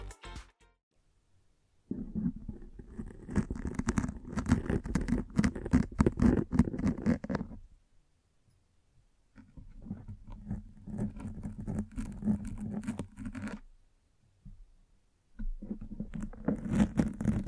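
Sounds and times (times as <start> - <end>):
microphone brushing and scratching: 1.9 - 7.8, 9.3 - 13.7, 15.4 - 17.4.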